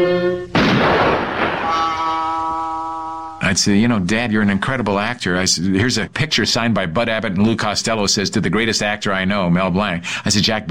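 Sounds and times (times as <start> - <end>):
cartoon gunshot: 0.6 - 2.2
sustained higher tone: 1.6 - 3.8
held tone: 1.6 - 4.1
speech: 3.5 - 10.6.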